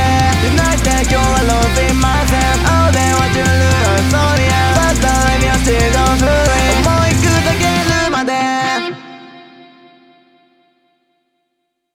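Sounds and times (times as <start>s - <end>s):
rock music: 0.0s - 9.5s.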